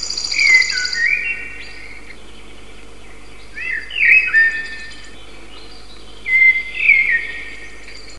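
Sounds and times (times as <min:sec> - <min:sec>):
common blackbird: 0:00.0 - 0:08.1.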